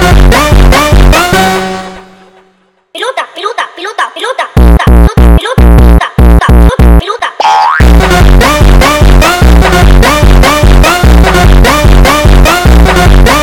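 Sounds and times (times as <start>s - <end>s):
sped up funk music: 0.0s - 2.5s, 4.6s - 7.0s, 7.7s - 13.4s.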